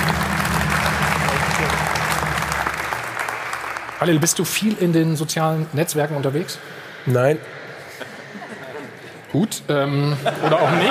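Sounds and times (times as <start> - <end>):
audience applause: 0.0 - 5.0
speech: 4.0 - 7.6, 9.3 - 10.8
laughter: 7.8 - 10.8.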